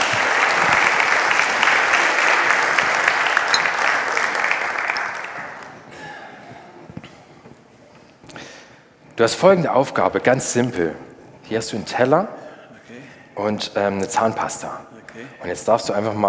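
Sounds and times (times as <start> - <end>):
audience applause: 0.0 - 5.9
speech: 9.2 - 12.4, 13.4 - 16.2.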